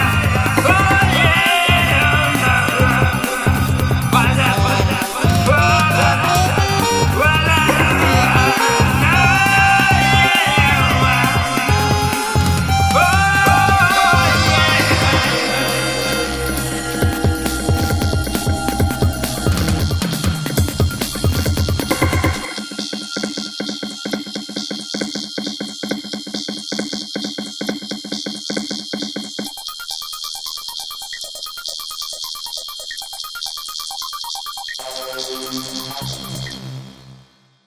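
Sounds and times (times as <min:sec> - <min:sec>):
improvised music: 0:00.0 - 0:25.1.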